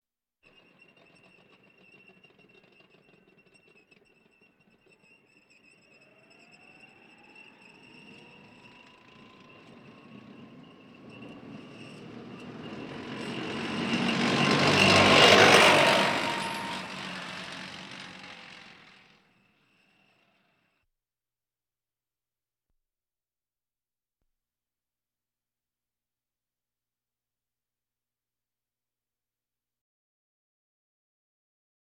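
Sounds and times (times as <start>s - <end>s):
military vehicles: 0.5s - 20.8s.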